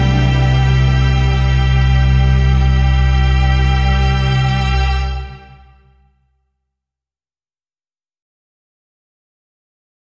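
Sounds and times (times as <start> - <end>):
piano and orchestra: 0.0 - 5.8.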